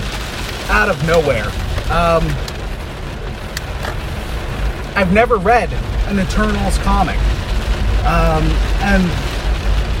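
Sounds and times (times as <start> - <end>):
heavy rain falling outside: 0.0 - 9.9
speech: 0.7 - 2.5, 5.0 - 7.3, 8.0 - 9.3.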